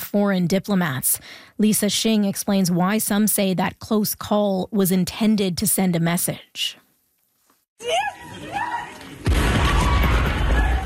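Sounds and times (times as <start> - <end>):
speech: 0.1 - 6.8, 7.8 - 8.7
drone strike explosion at train station: 9.2 - 10.8.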